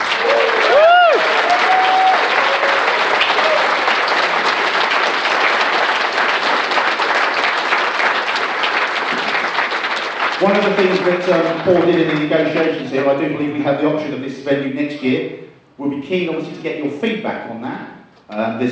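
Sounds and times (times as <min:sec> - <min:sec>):
audience round of applause: 0:00.0 - 0:13.1
whoop or whistle: 0:00.2 - 0:02.8
speech: 0:10.4 - 0:18.7.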